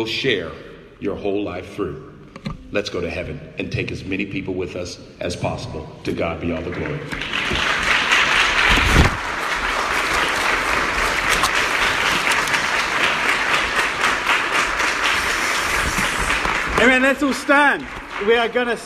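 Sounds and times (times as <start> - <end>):
speech: 0.0 - 2.1, 2.7 - 7.8, 16.8 - 18.8
audience applause: 6.6 - 18.8.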